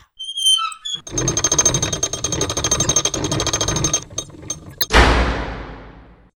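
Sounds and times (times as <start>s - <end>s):
secret door grinding open: 0.0s - 6.1s.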